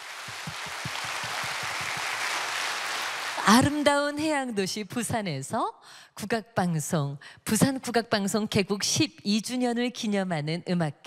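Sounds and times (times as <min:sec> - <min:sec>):
audience applause: 0:00.0 - 0:03.7
speech: 0:03.5 - 0:11.0.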